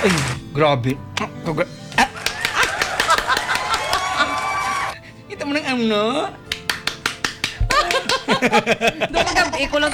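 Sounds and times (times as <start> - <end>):
speech: 0.0 - 2.1, 5.5 - 6.4, 8.3 - 9.9
laughter: 1.9 - 4.9, 7.6 - 9.9
hand clapping imitating chicken wings flapping: 1.9 - 5.0, 6.5 - 8.6.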